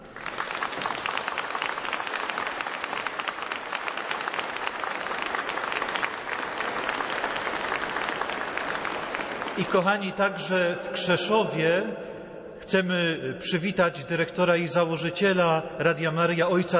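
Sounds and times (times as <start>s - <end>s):
warm audience applause: 0.0s - 10.0s
speech: 9.6s - 16.7s.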